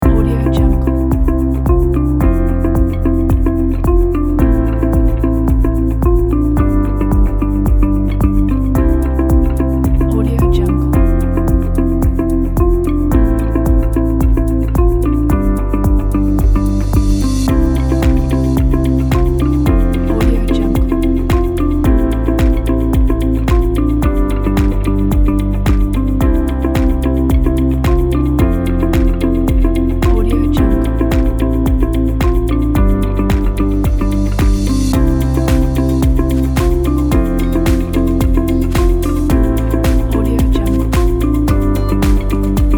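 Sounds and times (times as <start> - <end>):
uplifting corporate music: 0.0 - 42.7.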